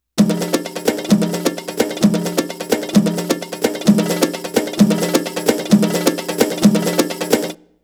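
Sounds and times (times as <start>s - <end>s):
Arabic rhythm percussion: 0.2s - 7.6s.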